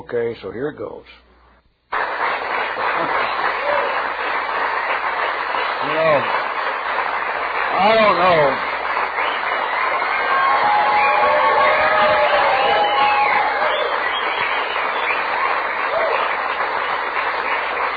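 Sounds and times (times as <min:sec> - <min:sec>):
speech: 0:00.0 - 0:01.3, 0:05.8 - 0:06.4, 0:07.8 - 0:08.7
audience applause: 0:01.9 - 0:17.9
cheering and whistling: 0:02.8 - 0:04.1, 0:07.6 - 0:16.9.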